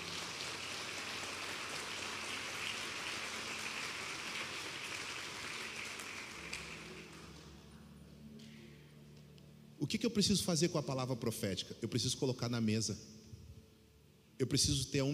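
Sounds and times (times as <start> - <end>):
audience applauding: 0.0 - 7.7
speech: 9.9 - 13.2, 14.4 - 15.1.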